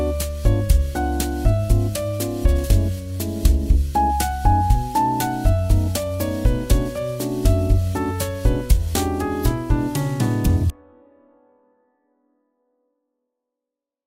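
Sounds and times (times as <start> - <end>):
bossa nova music: 0.0 - 10.7.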